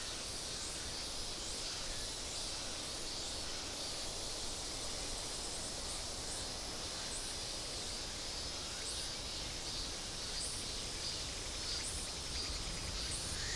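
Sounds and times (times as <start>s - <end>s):
insect chorus with dense high-pitched hiss: 0.0s - 13.5s.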